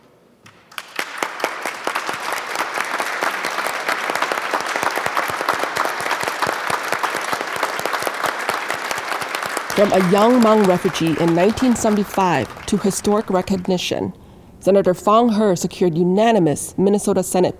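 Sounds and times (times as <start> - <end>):
applause in the senate gallery: 0.4 - 13.9
speech: 9.8 - 17.5.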